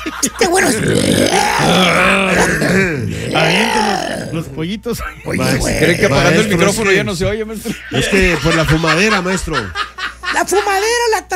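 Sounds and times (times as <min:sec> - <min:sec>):
laughter: 0:00.0 - 0:00.9, 0:05.4 - 0:11.1
speech: 0:00.0 - 0:11.3
long loud burp from acid reflux: 0:00.6 - 0:04.5.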